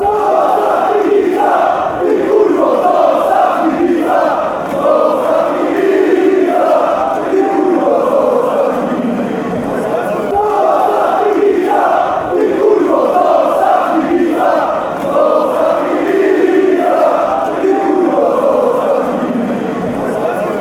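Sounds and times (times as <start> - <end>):
fans chanting: 0.0 - 20.5.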